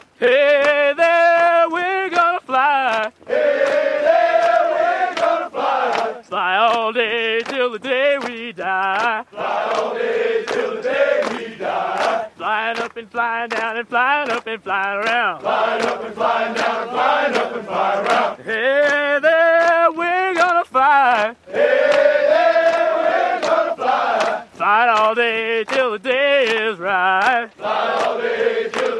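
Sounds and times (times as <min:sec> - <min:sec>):
military march: 0:00.0 - 0:28.9.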